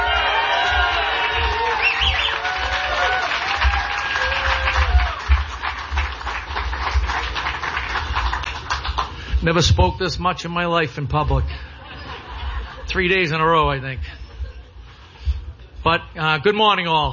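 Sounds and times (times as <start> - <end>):
audience cheering: 0.0 - 7.9
audience applause: 0.0 - 9.4
speech: 9.4 - 11.7, 12.9 - 14.2, 15.8 - 17.1
laughter: 11.5 - 15.2.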